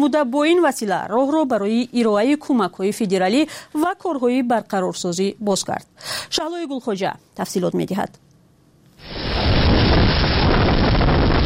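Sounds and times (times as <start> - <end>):
speech: 0.0 - 8.2
violent tornado wind roaring: 9.0 - 11.4.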